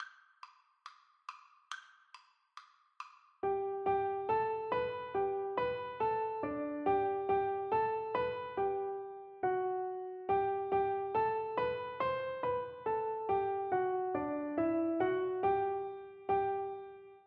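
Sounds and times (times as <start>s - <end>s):
piano duet: 3.4s - 17.2s.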